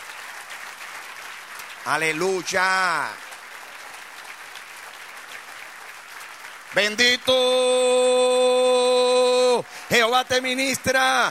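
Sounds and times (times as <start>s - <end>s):
loud audience applause: 0.0s - 11.2s
speech: 1.8s - 3.2s, 6.7s - 8.1s, 9.6s - 11.2s.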